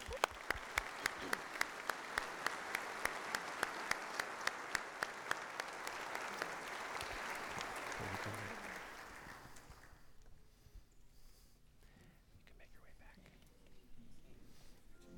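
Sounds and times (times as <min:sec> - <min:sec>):
audience applause: 0:00.0 - 0:10.2.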